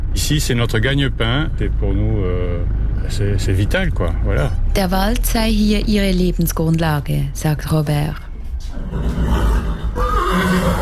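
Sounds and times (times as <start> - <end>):
steady low rumble: 0.0 - 10.0
speech: 0.2 - 9.2
horse neighing in a stud farm stable: 8.8 - 10.8.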